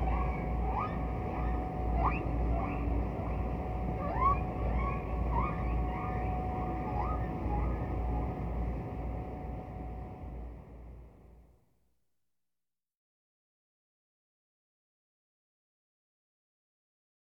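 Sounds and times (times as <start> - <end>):
distant whale call: 0.0 - 10.1.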